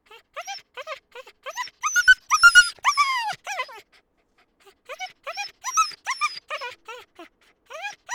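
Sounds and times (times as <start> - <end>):
dog yelping and whimpering with high-pitched cries: 0.4 - 3.8, 5.0 - 6.8, 7.7 - 8.1.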